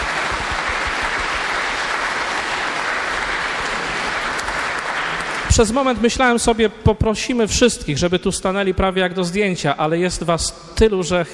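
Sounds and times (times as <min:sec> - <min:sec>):
applause: 0:00.0 - 0:06.0
speech: 0:05.6 - 0:11.3.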